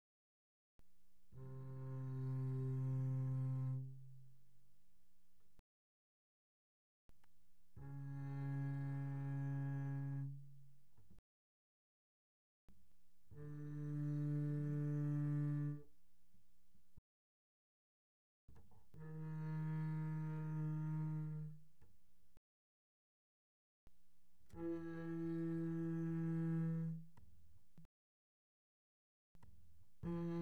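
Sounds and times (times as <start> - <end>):
double bass bowed pianissimo on the A string: 1.3 - 4.4, 7.7 - 11.2, 13.3 - 16.0, 18.8 - 21.8, 24.5 - 27.5, 29.9 - 30.4.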